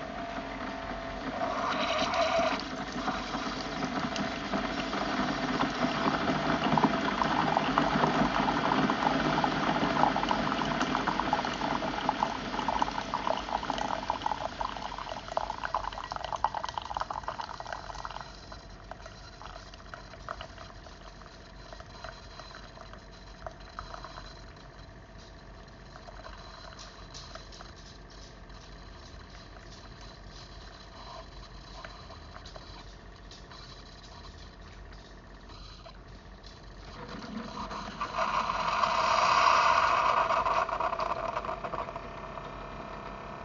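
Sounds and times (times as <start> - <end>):
coffee pouring into a cup from a Keurig coffee maker: 0.1 - 24.2, 25.9 - 27.5, 36.9 - 43.0.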